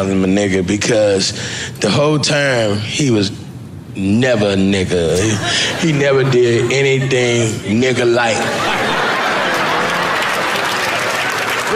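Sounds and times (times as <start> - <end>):
speech: 0.0 - 3.4, 4.0 - 8.8
laughter: 5.2 - 11.7
audience clapping: 9.2 - 11.7.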